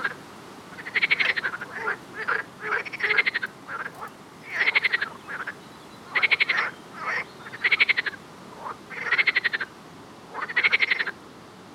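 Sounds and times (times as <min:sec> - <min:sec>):
frogs croaking with pulsed rattles and grating calls: 0:00.0 - 0:11.2.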